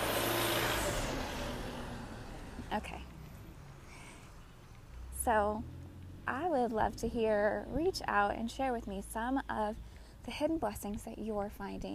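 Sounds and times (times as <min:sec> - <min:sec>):
UPS delivery truck driving: 0:00.0 - 0:06.5
speech: 0:02.7 - 0:03.1, 0:05.2 - 0:11.9.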